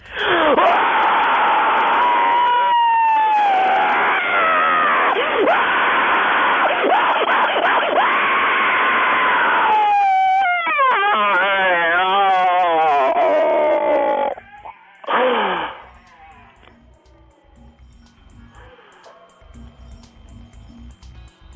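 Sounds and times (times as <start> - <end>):
listener screaming down the phone: 0.2 - 6.0, 6.6 - 16.6.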